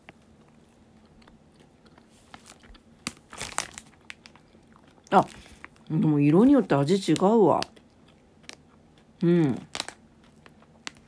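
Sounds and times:
crunchy chewing of a sour sweet: 0.0 - 5.9, 7.2 - 11.0
sour sweet wrapper crinkling: 2.1 - 5.9, 9.6 - 11.0
speech: 5.1 - 7.8, 9.2 - 9.7.

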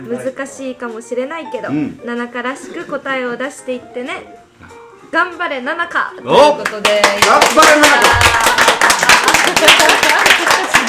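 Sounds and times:
speech: 0.0 - 10.8
audience clapping: 6.6 - 10.8.

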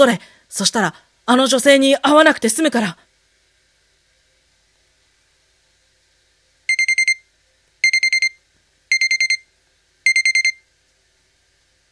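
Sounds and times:
speech: 0.0 - 3.0
alarm clock beeping: 6.7 - 7.2, 7.8 - 9.5, 10.1 - 10.6.

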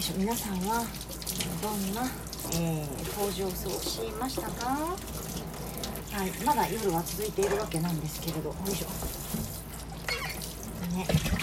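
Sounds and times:
speech: 0.0 - 5.5, 6.2 - 9.2, 10.9 - 11.4
tap water running into a sink: 0.0 - 11.4
dishes clinking: 10.1 - 10.4.

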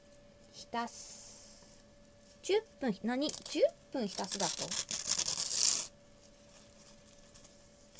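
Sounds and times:
speech: 0.6 - 1.2, 2.4 - 5.0
tearing pieces off by hand: 4.1 - 5.9.

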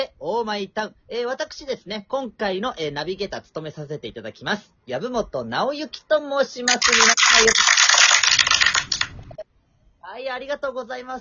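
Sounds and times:
speech: 0.2 - 7.8, 10.1 - 11.1
applause: 6.7 - 9.2.

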